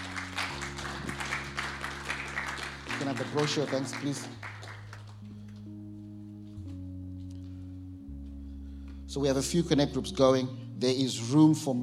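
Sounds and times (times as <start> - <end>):
audience applause: 0.0 - 5.3
low keyboard-like drone: 0.0 - 11.8
speech: 3.0 - 4.4, 9.2 - 11.8.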